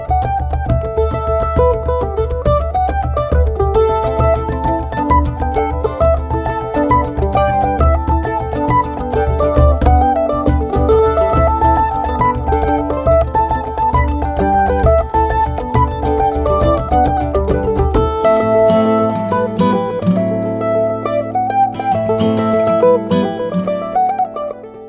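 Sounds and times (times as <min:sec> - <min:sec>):
jig tunes: 0:00.2 - 0:24.7.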